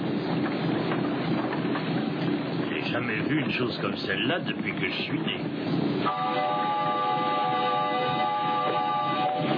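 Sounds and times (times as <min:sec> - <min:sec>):
steam-powered car engine running: 0:00.0 - 0:09.5
speech: 0:02.9 - 0:06.6.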